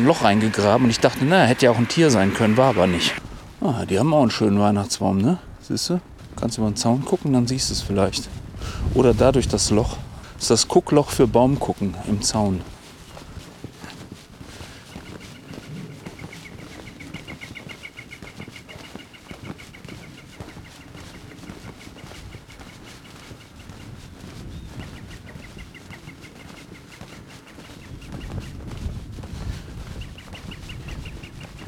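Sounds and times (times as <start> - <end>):
bird calling: 0.0 - 3.2, 14.8 - 23.6, 24.6 - 28.3
speech: 0.0 - 12.8
rustling background: 0.0 - 31.6.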